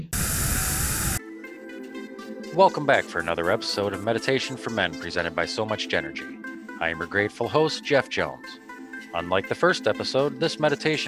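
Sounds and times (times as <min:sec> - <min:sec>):
vacuum cleaner running: 0:00.0 - 0:01.2
speech: 0:02.6 - 0:11.0.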